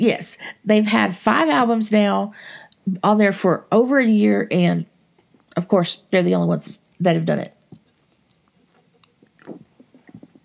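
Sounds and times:
speech: 0:00.0 - 0:04.9, 0:05.6 - 0:07.6
person drinking: 0:09.0 - 0:10.4.

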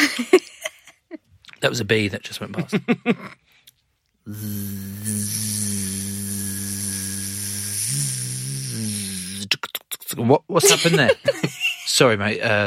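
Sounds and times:
speech: 0:00.1 - 0:00.6, 0:01.6 - 0:03.4, 0:10.3 - 0:12.6
person vocally imitating a tattoo machine buzzing: 0:04.3 - 0:09.5
laughter: 0:10.6 - 0:11.9.

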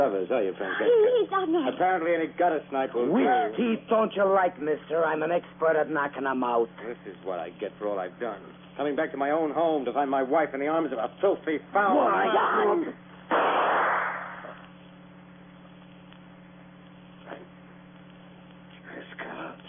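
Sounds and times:
speech: 0:00.0 - 0:14.1
gunshot: 0:13.3 - 0:14.6.

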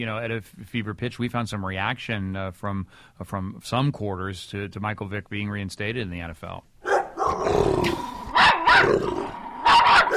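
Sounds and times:
speech: 0:00.0 - 0:08.1, 0:08.8 - 0:09.4
dogs barking: 0:06.8 - 0:07.5, 0:08.4 - 0:10.1
dogs growling: 0:06.9 - 0:10.1.

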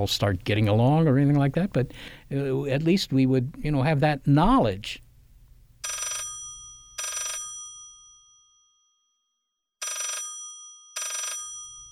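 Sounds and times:
speech: 0:00.0 - 0:05.0
telephone bell ringing: 0:05.8 - 0:08.8, 0:09.8 - 0:11.9.

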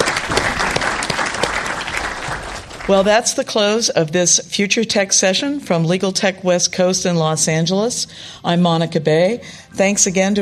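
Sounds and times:
audience applause: 0:00.0 - 0:03.2
speech: 0:02.9 - 0:10.4.

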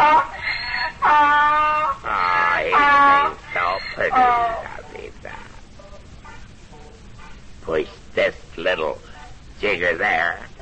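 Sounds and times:
donkey braying: 0:00.0 - 0:05.6
speech: 0:04.0 - 0:04.6, 0:09.6 - 0:10.4.

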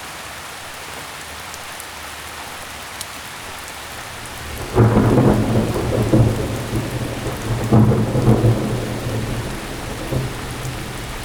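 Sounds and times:
steady rain in an autumn thunderstorm: 0:03.3 - 0:11.2
loud deep roll of thunder in an autumn thunderstorm: 0:04.1 - 0:11.2.

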